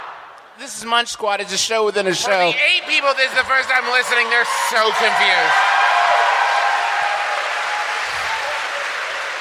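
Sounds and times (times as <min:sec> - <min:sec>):
speech: 0:00.7 - 0:05.9
live audience applause and cheering: 0:02.5 - 0:09.3.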